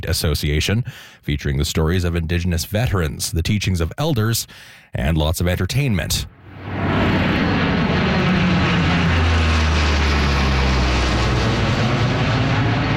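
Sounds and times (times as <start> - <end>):
speech: 0.0 - 6.8
military aircraft flying over food trucks and a kid zone: 6.3 - 12.9.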